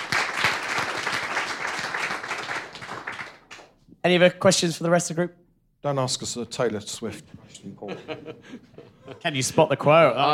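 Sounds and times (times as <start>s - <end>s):
audience round of applause: 0.0s - 3.7s
speech: 4.0s - 10.3s
laughter: 7.7s - 10.3s.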